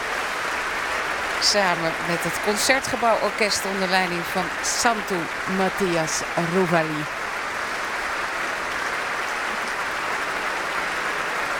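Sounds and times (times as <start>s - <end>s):
concert hall audience applause: 0.0s - 11.5s
speech: 1.4s - 7.2s.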